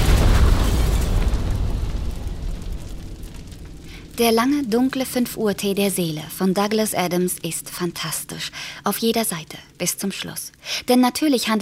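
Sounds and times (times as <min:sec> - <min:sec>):
explosion with orange fireball shooting through the airport roof: 0:00.0 - 0:03.9
speech: 0:04.2 - 0:11.6.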